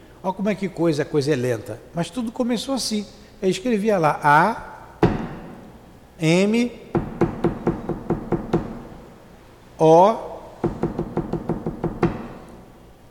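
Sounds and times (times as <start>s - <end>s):
speech: 0.2s - 4.7s, 6.2s - 7.1s, 9.8s - 10.8s
sharp knocks counted out as letters: 5.0s - 5.7s, 6.9s - 9.0s, 10.6s - 12.7s.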